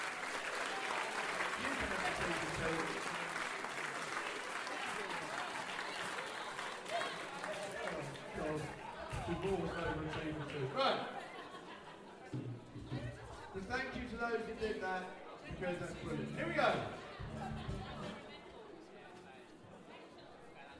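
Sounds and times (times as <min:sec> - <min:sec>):
audience round of applause: 0:00.0 - 0:09.6
laughter: 0:00.0 - 0:13.0, 0:16.1 - 0:18.6
speech: 0:01.8 - 0:03.1, 0:09.4 - 0:11.3, 0:13.7 - 0:17.0.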